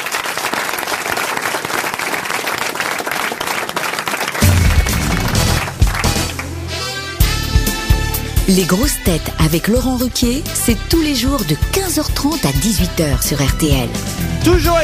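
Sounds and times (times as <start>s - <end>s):
audience applause: 0.0s - 7.2s
speech: 8.5s - 14.8s.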